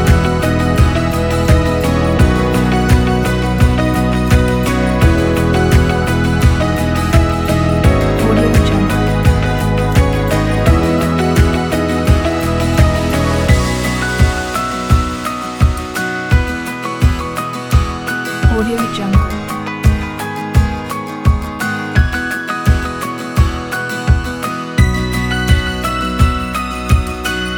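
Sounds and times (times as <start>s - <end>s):
slow inspirational corporate music: 0.0s - 27.5s.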